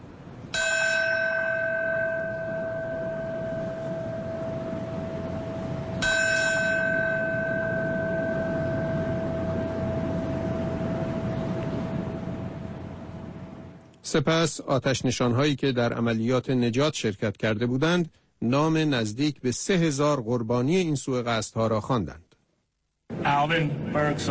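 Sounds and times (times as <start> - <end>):
memorial bell ringing: 0.5 - 12.6
speech: 14.1 - 22.2, 23.3 - 24.2.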